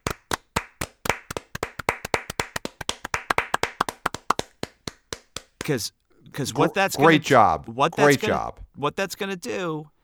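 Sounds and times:
hand clapping: 0.0s - 5.9s
speech: 5.6s - 9.9s.

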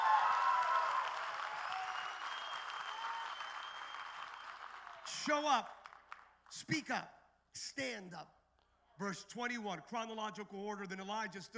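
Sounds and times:
audience clapping: 0.0s - 6.5s
speech: 5.2s - 5.8s, 6.5s - 8.4s, 9.0s - 11.5s.

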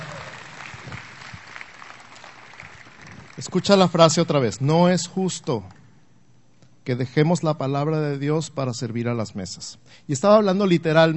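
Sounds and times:
applause: 0.0s - 3.9s
speech: 3.4s - 5.8s, 6.9s - 11.1s.

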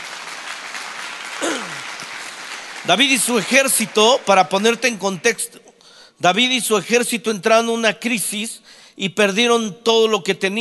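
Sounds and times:
audience applause: 0.0s - 5.1s
speech: 2.9s - 10.5s.

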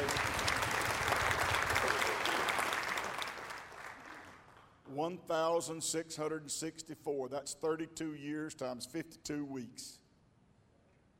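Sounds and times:
audience applause: 0.0s - 4.6s
speech: 5.1s - 10.0s.

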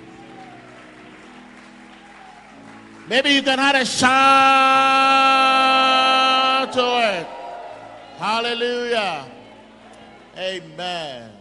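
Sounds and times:
audience clapping: 0.0s - 8.2s
speech: 3.1s - 5.3s, 8.2s - 9.4s, 10.4s - 11.4s.

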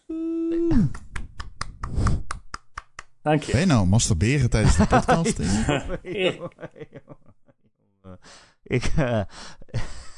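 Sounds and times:
speech: 0.8s - 1.0s, 3.2s - 7.3s, 8.2s - 9.9s
hand clapping applause: 0.8s - 3.2s
laughter: 4.5s - 7.4s.

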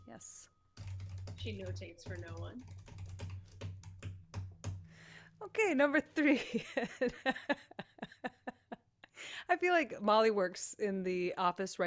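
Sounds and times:
speech: 0.1s - 2.9s, 5.4s - 8.5s, 9.4s - 11.8s
fast typing on a computer keyboard: 0.8s - 4.9s.

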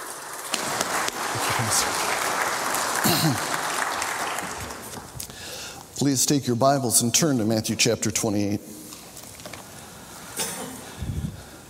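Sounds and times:
Highland Hills church congregation applause: 0.0s - 5.2s
speech: 1.6s - 2.3s, 3.0s - 3.6s, 6.0s - 8.8s.

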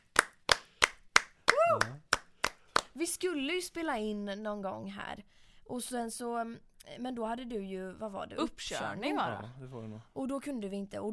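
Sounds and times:
celebratory hand claps for passing a driving test: 0.0s - 3.0s
speech: 3.0s - 11.1s.

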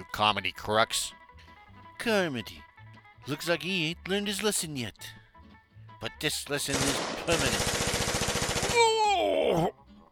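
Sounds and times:
speech: 0.1s - 1.2s, 2.0s - 5.2s, 6.0s - 7.8s
machine gun fire in a radio drama: 6.7s - 8.8s
man groaning: 8.6s - 9.8s.

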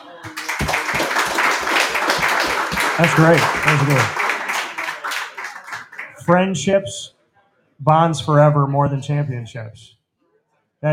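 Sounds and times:
clapping applause: 0.0s - 6.4s
speech: 3.0s - 4.2s, 6.3s - 7.2s, 7.8s - 10.0s.

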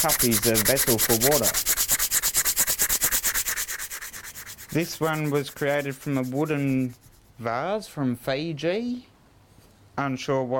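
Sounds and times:
speech: 0.0s - 2.1s, 4.7s - 9.1s, 10.0s - 10.5s
sanding wood: 0.0s - 7.4s.

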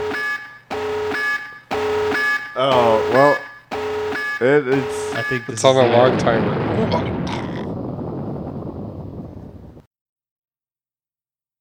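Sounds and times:
video game tactical nuke incoming alarm: 0.0s - 7.3s
speech: 2.6s - 3.4s, 4.4s - 7.5s.

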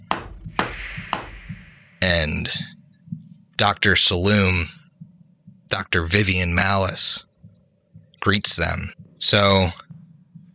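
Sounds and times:
sharp woody knocks on a door: 0.0s - 1.7s
speech: 2.0s - 2.7s, 3.6s - 4.8s, 5.7s - 7.3s, 8.2s - 9.8s.

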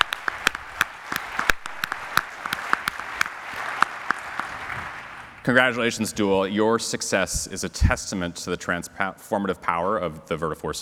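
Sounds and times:
audience applause: 0.0s - 5.4s
speech: 5.5s - 10.8s.

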